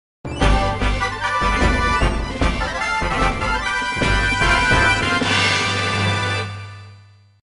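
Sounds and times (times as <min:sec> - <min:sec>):
victory theme music: 0:00.3 - 0:07.0.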